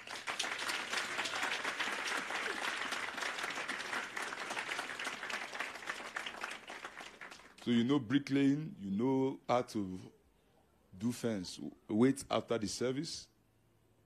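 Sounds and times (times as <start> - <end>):
audience clapping: 0.0 - 7.8
speech: 7.6 - 10.2, 11.0 - 13.3.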